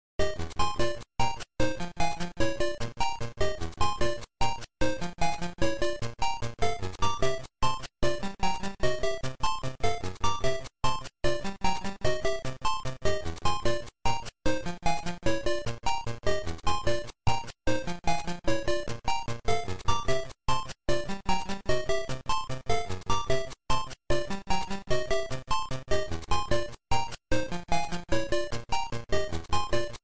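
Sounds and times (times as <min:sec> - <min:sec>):
overworld map game music: 0:00.2 - 0:30.0.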